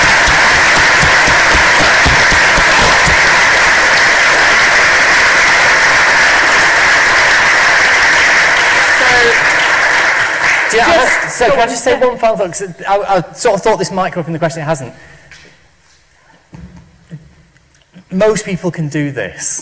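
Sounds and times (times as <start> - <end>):
audience applause: 0.0 - 11.2
speech: 10.8 - 15.4, 18.1 - 19.6.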